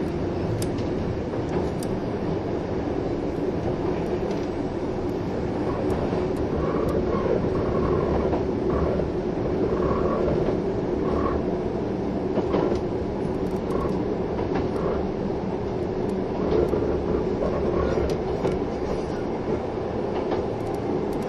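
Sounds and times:
Kintetsu 16000 series Yoshino Express train running: 0.0s - 21.2s.

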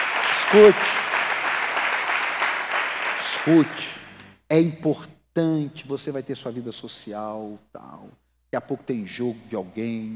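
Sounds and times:
audience applause: 0.0s - 3.9s
speech: 0.5s - 1.0s, 3.4s - 10.1s.

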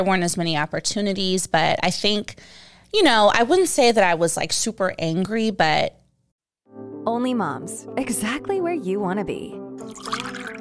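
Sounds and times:
speech: 0.0s - 6.0s, 6.8s - 10.2s
low-sugar wine pouring into a glass: 9.8s - 10.5s.

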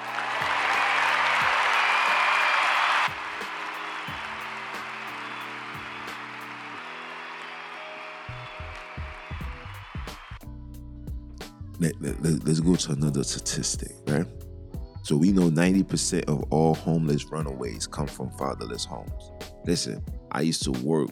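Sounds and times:
crowd applause: 0.0s - 10.4s
speech: 11.8s - 14.4s, 15.1s - 21.1s.

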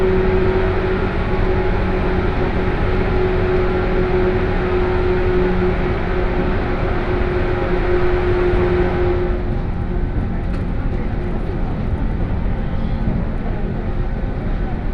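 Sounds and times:
117 series Kosei Line local train motors groaning in a tunnel: 0.0s - 14.9s
faint sustained whine: 0.0s - 14.9s.

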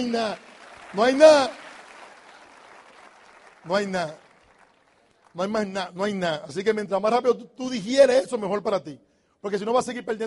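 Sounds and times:
speech: 0.0s - 1.6s, 3.6s - 4.2s, 5.3s - 10.2s
applause: 0.0s - 6.2s.

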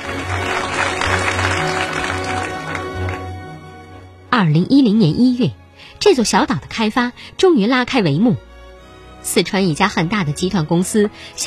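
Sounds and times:
crowd applause: 0.0s - 3.6s
speech: 4.4s - 8.5s, 9.2s - 11.4s.

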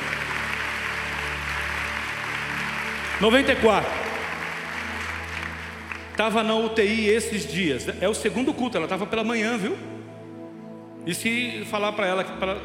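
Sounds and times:
audience applauding: 0.0s - 7.0s
speech: 3.2s - 4.0s, 6.2s - 9.9s, 11.1s - 12.6s.

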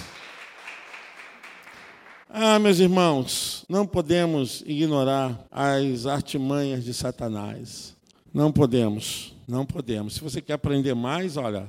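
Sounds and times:
audience applause: 0.0s - 2.2s
speech: 2.3s - 11.6s.

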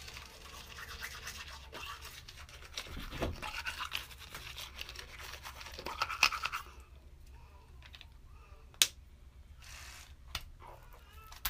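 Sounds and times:
toothbrush scrubbing teeth: 0.0s - 6.8s.

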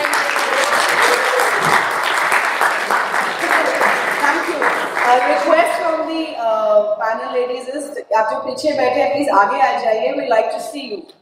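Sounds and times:
audience clapping: 0.0s - 5.9s
speech: 7.2s - 11.1s.

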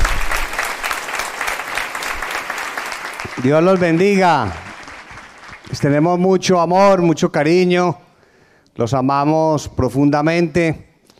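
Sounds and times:
audience applause: 0.0s - 6.2s
speech: 3.4s - 4.6s, 5.7s - 8.0s, 8.8s - 10.9s.

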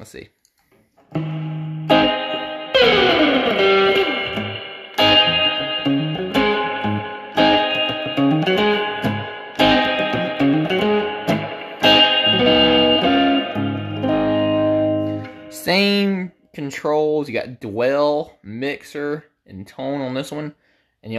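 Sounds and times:
speech: 0.0s - 0.4s, 1.1s - 1.4s, 16.8s - 21.1s
electric guitar through a '63 spring reverb effect: 1.0s - 16.0s.

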